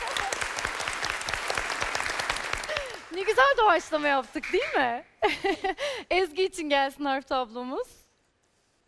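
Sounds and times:
applause: 0.0 - 4.7
speech: 3.2 - 8.0.

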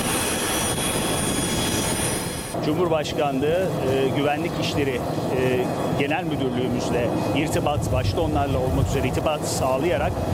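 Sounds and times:
jet engine roar of an airplane departing Istanbul Atatürk Airport: 0.0 - 10.3
speech: 2.6 - 10.3.

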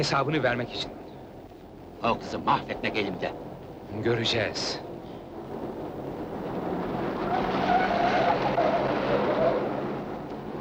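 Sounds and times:
speech: 0.0 - 1.0, 2.0 - 4.8
car driven recklessly fast, engine roaring: 4.8 - 10.5
tires squealing: 6.0 - 10.5.

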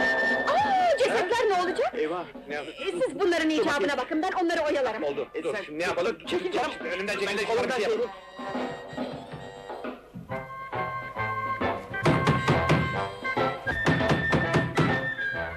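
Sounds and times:
music playing: 0.0 - 15.5
speech: 1.6 - 9.1
someone banging on a door: 12.0 - 13.0.

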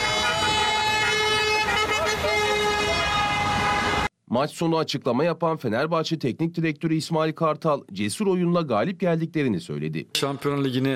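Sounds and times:
car horns honking in a fan convoy: 0.0 - 4.1
street noise: 0.0 - 4.2
speech: 4.4 - 10.9.

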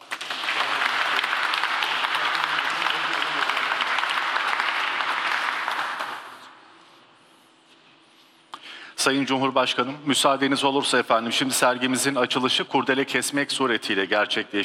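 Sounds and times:
audience applause at an exhibition opening: 0.0 - 6.5
speech: 9.0 - 14.6.

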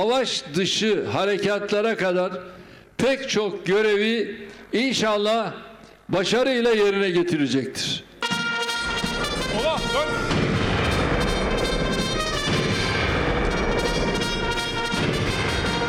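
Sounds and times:
speech: 0.0 - 8.1
heavy cannon fire from the sea: 8.8 - 15.8.

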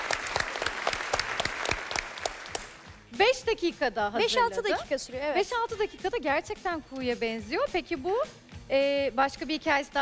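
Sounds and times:
audience applause: 0.0 - 2.9
speech: 3.2 - 10.0.

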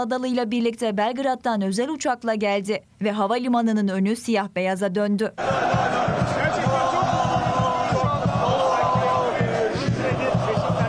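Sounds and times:
speech: 0.0 - 6.0
football fans chanting outside an Istanbul airport: 5.4 - 10.8
people shouting: 5.4 - 10.8.

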